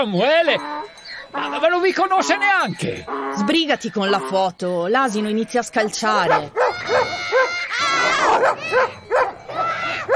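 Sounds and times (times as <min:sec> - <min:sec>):
speech: 0:00.0 - 0:07.3, 0:08.4 - 0:09.0
dogs barking by a flock of sheep: 0:05.8 - 0:10.1.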